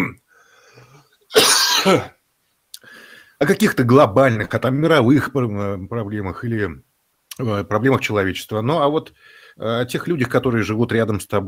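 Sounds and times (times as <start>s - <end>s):
man coughing after choking: 1.3s - 2.2s
speech: 1.8s - 2.2s, 3.4s - 11.4s.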